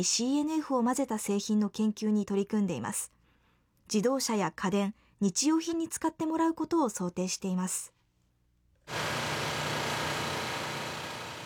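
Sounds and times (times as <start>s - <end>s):
speech: 0.0s - 3.2s, 3.9s - 8.0s
machinery roaring inside a large cellulose nanofiber production plant: 8.9s - 11.4s.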